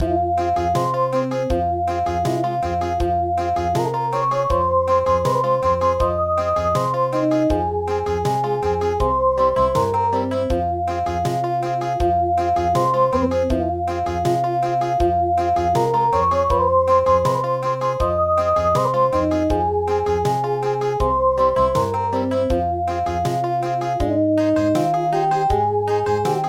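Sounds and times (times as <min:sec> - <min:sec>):
country music: 0:00.0 - 0:26.4.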